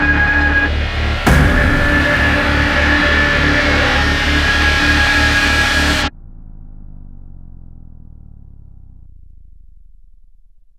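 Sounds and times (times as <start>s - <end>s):
distress hits with no delay: 0.1s - 6.1s.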